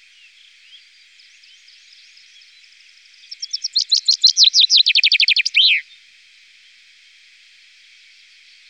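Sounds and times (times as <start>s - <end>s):
Common chaffinch trilling song: 3.3s - 5.8s.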